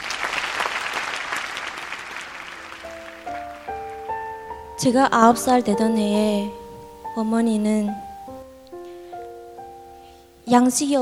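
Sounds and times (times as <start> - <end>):
audience applause: 0.0 - 4.6
speech: 4.8 - 6.6, 7.2 - 8.0, 10.5 - 11.0.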